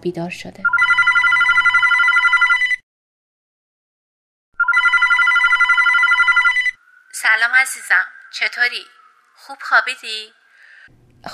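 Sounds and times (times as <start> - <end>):
speech: 0.0 - 1.0, 7.4 - 11.3
telephone bell ringing with a bright warbling metallic ring: 0.7 - 2.8, 4.6 - 6.8.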